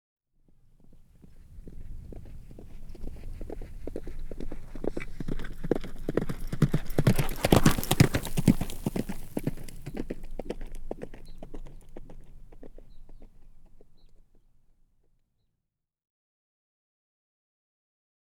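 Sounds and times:
horse hoofbeats in a fast gallop: 0.8s - 14.4s.

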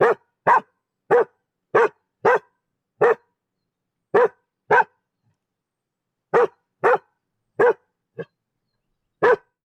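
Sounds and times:
dog barking: 0.0s - 3.3s, 4.1s - 5.0s, 6.3s - 8.3s, 9.2s - 9.6s.

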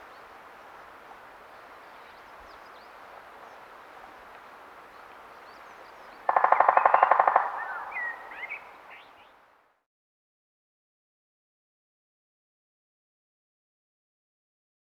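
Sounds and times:
three-toed woodpecker drumming: 6.3s - 8.2s.

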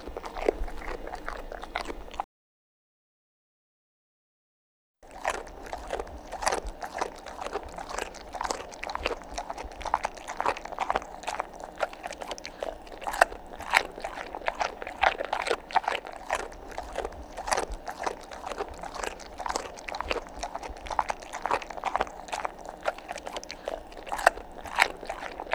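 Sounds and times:
dog chewing food: 0.0s - 2.3s, 5.0s - 25.5s.

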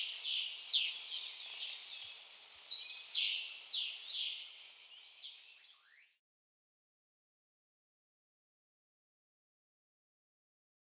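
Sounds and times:
ferruginous flycatcher calling: 0.0s - 6.0s.

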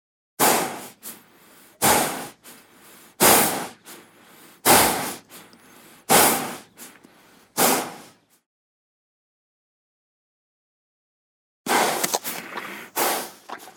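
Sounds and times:
horse breathing hard after a run: 0.4s - 8.3s, 11.7s - 13.7s.

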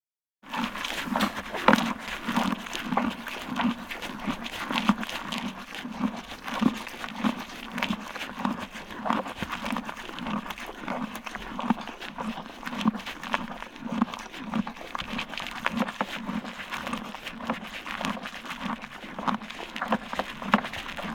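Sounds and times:
light rustling: 0.5s - 5.5s
horse chewing grain: 0.5s - 21.1s.

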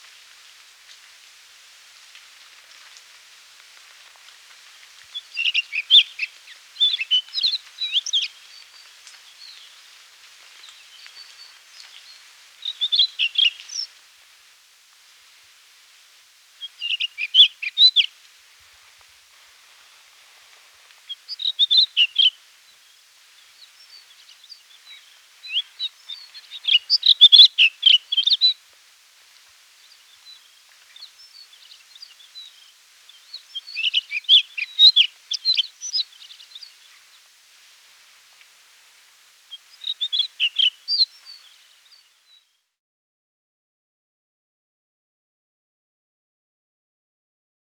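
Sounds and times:
Güldenstädt's redstart twittering song: 5.2s - 9.7s, 16.6s - 18.1s, 21.1s - 22.4s, 23.5s - 28.6s, 29.9s - 37.1s, 39.5s - 42.4s.

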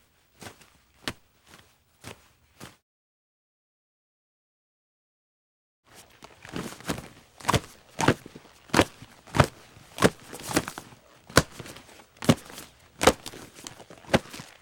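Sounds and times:
cow footsteps: 6.0s - 14.5s.

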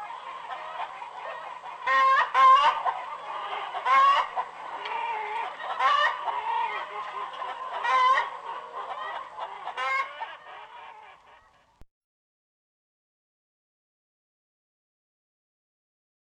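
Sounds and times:
chickens clucking and squawking: 0.0s - 11.8s.

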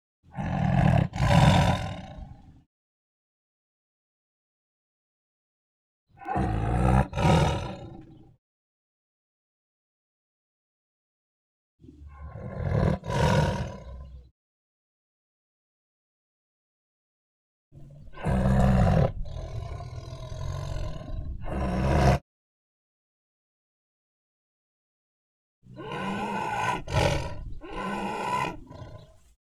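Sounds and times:
tiger growling: 0.3s - 2.6s, 6.2s - 8.3s, 11.8s - 14.3s, 17.8s - 22.2s, 25.7s - 29.4s.

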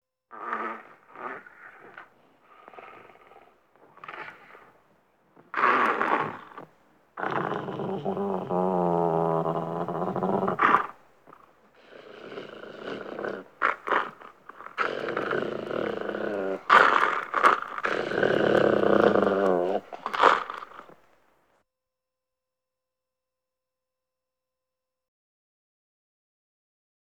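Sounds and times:
dog snarling: 0.3s - 4.8s, 5.4s - 21.0s.

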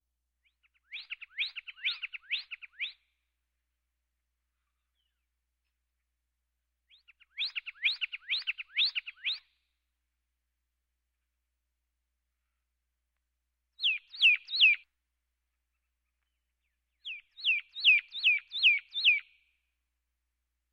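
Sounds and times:
pyrrhuloxia whistling: 0.9s - 3.0s, 6.9s - 9.5s, 13.8s - 14.8s, 17.0s - 19.3s.

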